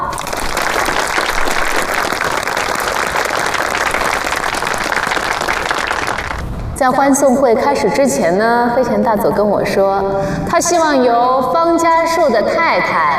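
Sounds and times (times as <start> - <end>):
audience applauding: 0.0 - 6.5
speech: 6.8 - 13.1.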